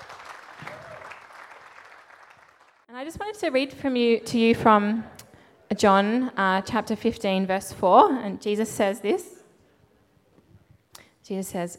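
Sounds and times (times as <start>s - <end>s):
audience clapping: 0.0s - 2.9s
speech: 3.0s - 5.2s, 5.8s - 9.4s, 11.3s - 11.7s.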